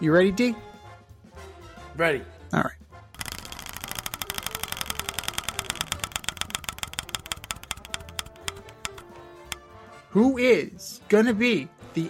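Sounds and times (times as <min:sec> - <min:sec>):
speech: 0:00.0 - 0:00.7, 0:02.0 - 0:02.8, 0:10.1 - 0:12.0
prize wheel spinning: 0:03.2 - 0:09.6.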